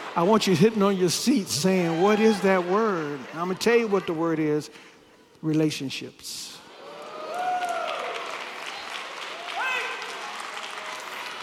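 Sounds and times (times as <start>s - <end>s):
audience clapping: 0.0s - 4.5s, 6.8s - 11.4s
speech: 0.2s - 6.5s.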